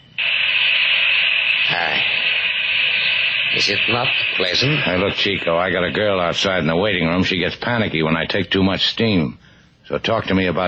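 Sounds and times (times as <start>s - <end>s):
cold water hissing on hot sauna rocks: 0.2s - 5.8s
speech: 3.6s - 10.6s.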